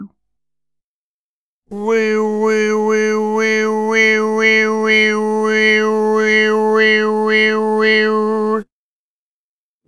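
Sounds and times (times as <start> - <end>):
overtones: 1.7 - 8.6.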